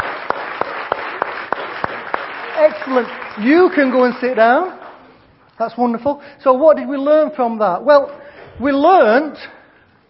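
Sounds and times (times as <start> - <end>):
crowd applause: 0.0 - 4.6
speech: 2.6 - 4.8, 5.6 - 9.6.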